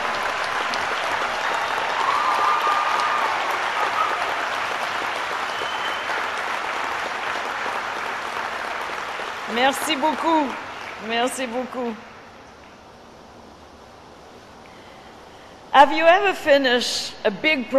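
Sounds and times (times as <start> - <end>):
audience applause for graduates: 0.0 - 11.1
speech: 9.7 - 12.1, 15.8 - 17.7.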